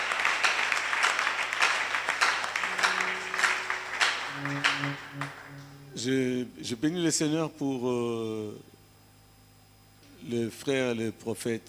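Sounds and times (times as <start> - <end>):
church congregation applauding and cheering during a worship service: 0.0 - 6.0
sustained keyboard notes: 2.2 - 6.5
speech: 6.0 - 8.7, 10.3 - 11.6.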